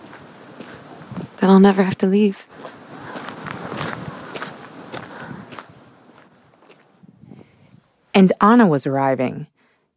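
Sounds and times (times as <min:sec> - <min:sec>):
footsteps of someone walking: 0:00.0 - 0:01.5, 0:02.5 - 0:07.2
speech: 0:01.4 - 0:02.5, 0:08.2 - 0:09.5.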